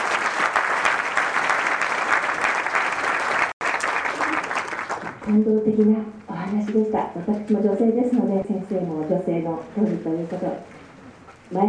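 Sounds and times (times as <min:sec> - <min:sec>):
audience applause: 0:00.0 - 0:05.3
speech: 0:05.3 - 0:10.8.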